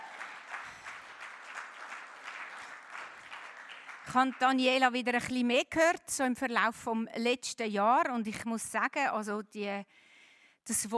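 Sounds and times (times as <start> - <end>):
audience clapping: 0.0 - 5.1
speech: 4.1 - 10.9.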